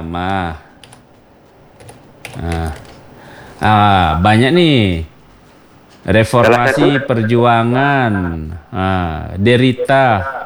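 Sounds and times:
speech: 0.0 - 0.7, 2.4 - 2.8, 3.6 - 5.1, 6.0 - 10.4
slow typing on a computer keyboard: 0.2 - 3.8
laughter: 2.4 - 5.0, 5.8 - 10.4
person humming: 6.3 - 7.4.

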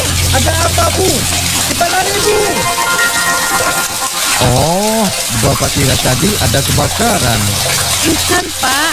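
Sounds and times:
water gushing from an open tap and flooding the room: 0.0 - 8.9
speech: 0.4 - 8.9.

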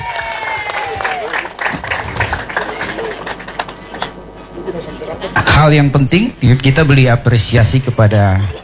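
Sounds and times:
audience applause: 0.0 - 4.1
speech: 5.6 - 8.6.

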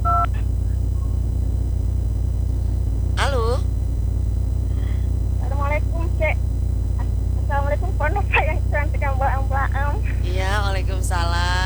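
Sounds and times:
touch-tone telephone dialing as a call is connected to Jakarta: 0.0 - 0.3
faint chirps on the telephone line: 0.0 - 9.4
steady low hum on the telephone line: 0.0 - 11.6.

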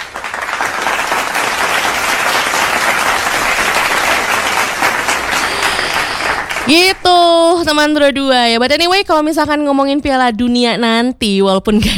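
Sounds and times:
applause: 0.0 - 7.3
speech: 6.7 - 11.9.

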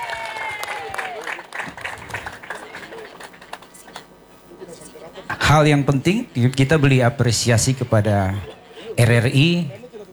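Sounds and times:
audience applause: 0.0 - 4.1
speech: 5.5 - 9.8.

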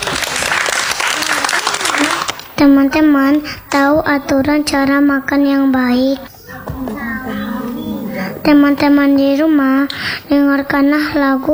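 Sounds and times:
applause during a children's program: 0.0 - 2.6
speech: 2.6 - 7.0, 8.4 - 11.5
laughter: 6.0 - 10.5.

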